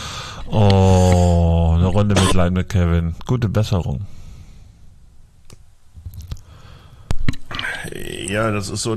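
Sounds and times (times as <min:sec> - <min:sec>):
speech: 0:00.5 - 0:01.0, 0:01.9 - 0:04.2, 0:08.3 - 0:08.9
person in a coughing fit: 0:02.0 - 0:02.5.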